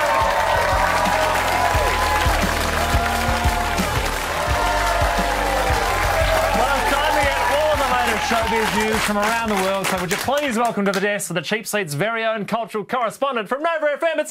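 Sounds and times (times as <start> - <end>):
crowd whooping: 0.0 - 10.1
audience clapping for football guest Archie Thompson: 0.0 - 11.2
speech: 8.6 - 14.2.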